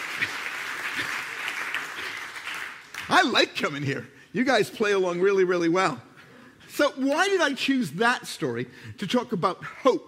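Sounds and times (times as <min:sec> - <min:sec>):
crowd clapping: 0:00.0 - 0:03.7
speech: 0:03.1 - 0:06.1, 0:06.7 - 0:10.0.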